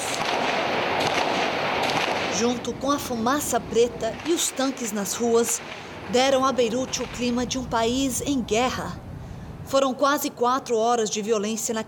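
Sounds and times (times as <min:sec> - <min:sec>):
bursts of gunfire during protests: 0:00.0 - 0:02.6
speech: 0:02.4 - 0:09.0, 0:09.7 - 0:11.8.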